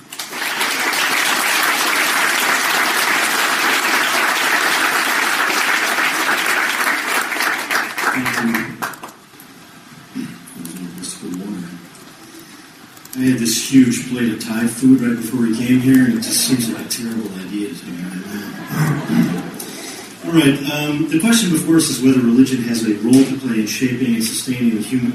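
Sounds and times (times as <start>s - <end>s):
audience applause greeting a professor arriving to speak: 0.0s - 9.2s
speech: 13.2s - 19.4s, 20.2s - 25.1s
laughter: 18.1s - 20.2s.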